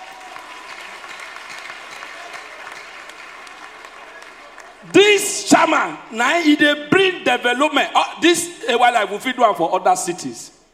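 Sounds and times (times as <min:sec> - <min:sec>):
audience applause: 0:00.0 - 0:05.0
speech: 0:04.8 - 0:10.6.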